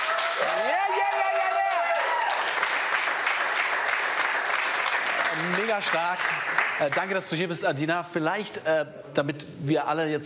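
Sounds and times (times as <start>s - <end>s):
crew applause: 0.0s - 7.4s
speech: 5.4s - 10.2s.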